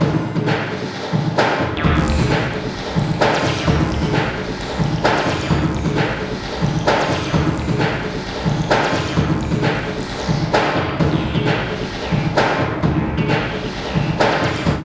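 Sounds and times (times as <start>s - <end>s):
industrial techno music: 0.0s - 14.8s.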